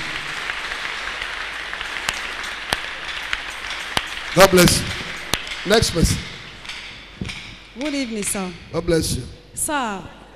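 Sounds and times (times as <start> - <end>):
crowd clapping: 0.0 - 6.4
speech: 4.4 - 5.0, 5.6 - 6.3, 7.2 - 10.2.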